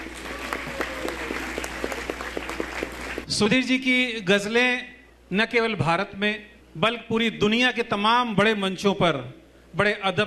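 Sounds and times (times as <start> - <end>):
audience applause: 0.0 - 3.3
speech: 3.3 - 10.2.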